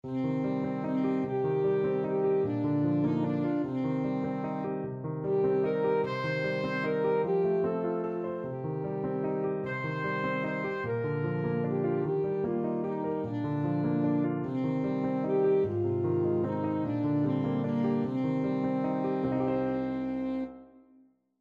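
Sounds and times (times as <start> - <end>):
saxophone: 0.0 - 20.8.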